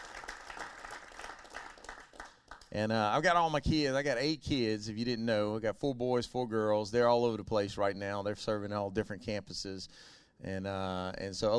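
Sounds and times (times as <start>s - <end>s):
church congregation clapping for a man: 0.0s - 2.8s
speech: 2.7s - 11.5s.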